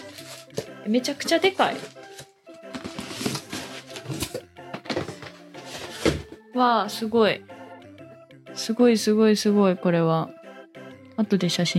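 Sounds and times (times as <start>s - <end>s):
cardboard box opening: 0.0s - 0.6s, 1.5s - 4.4s, 5.0s - 6.2s
speech: 0.8s - 2.0s, 6.6s - 7.5s, 8.7s - 10.4s, 11.2s - 11.7s.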